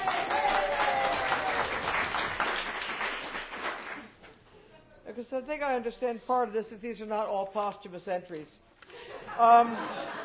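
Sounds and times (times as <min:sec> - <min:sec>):
crowd applauding: 0:00.0 - 0:04.2
speech: 0:05.2 - 0:08.7, 0:09.3 - 0:10.2.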